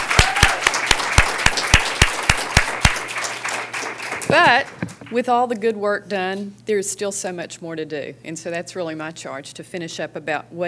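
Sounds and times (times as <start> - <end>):
audience round of applause: 0.0 - 4.8
speech: 4.3 - 10.6.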